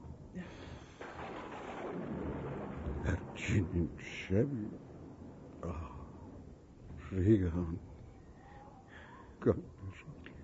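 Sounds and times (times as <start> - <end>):
rainfall: 0.4 - 7.8
rolling thunder: 0.6 - 8.0
speech: 3.1 - 4.9, 5.6 - 6.0, 7.1 - 7.9, 9.4 - 10.2.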